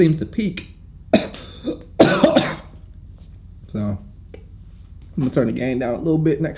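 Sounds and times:
speech: 0.0s - 0.7s, 3.7s - 4.1s, 5.2s - 6.5s
coughing: 1.1s - 2.8s.

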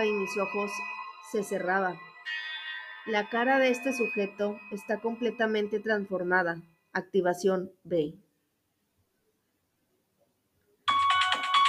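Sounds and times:
speech: 0.0s - 2.1s, 3.1s - 8.2s
electronic alarm: 0.0s - 6.9s.

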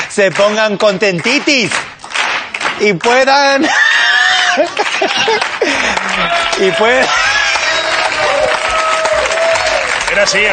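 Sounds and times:
crowd applauding: 0.0s - 3.7s, 4.3s - 10.5s
speech: 0.2s - 1.9s, 2.8s - 3.8s, 4.6s - 7.4s, 10.2s - 10.5s
raised voices and tonal cheers: 3.6s - 10.5s
laughter: 4.3s - 9.1s.

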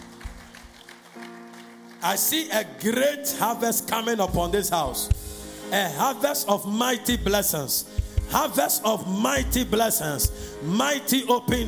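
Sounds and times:
audience clapping: 0.0s - 3.1s
speech: 2.0s - 11.6s.

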